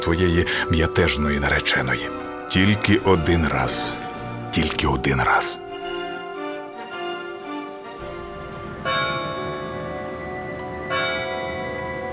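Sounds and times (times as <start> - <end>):
speech: 0.0 - 5.6
town hall clock bell striking at night: 8.0 - 12.1.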